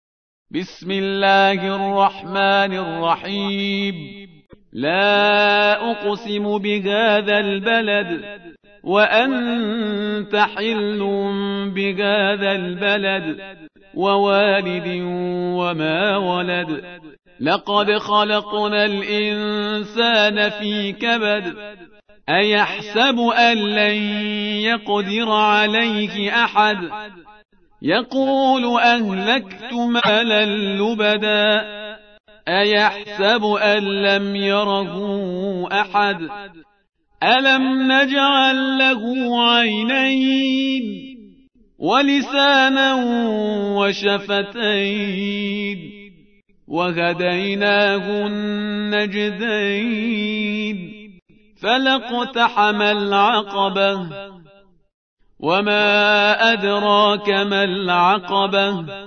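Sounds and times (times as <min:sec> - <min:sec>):
surah recitation: 0:00.5 - 0:36.6, 0:37.2 - 0:41.1, 0:41.8 - 0:46.1, 0:46.7 - 0:54.4, 0:55.4 - 0:59.0.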